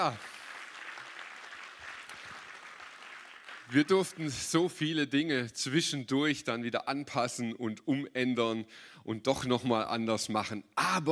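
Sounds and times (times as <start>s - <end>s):
speech: 0.0s - 0.3s, 3.7s - 11.1s
audience applause: 0.0s - 4.4s.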